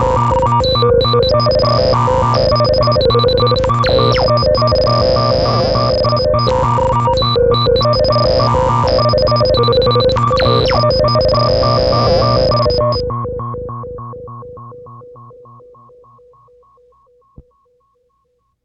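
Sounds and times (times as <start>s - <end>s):
Roland Promars Compuphonic synthesizer riffs on both channels: 0.0s - 13.1s.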